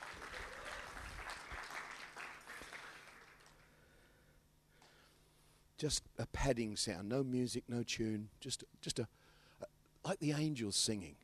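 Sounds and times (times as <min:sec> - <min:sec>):
audience applause: 0:00.0 - 0:03.6
speech: 0:05.8 - 0:11.2.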